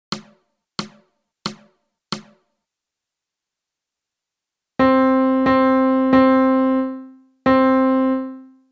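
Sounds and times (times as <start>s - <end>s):
melody: 4.8s - 8.6s.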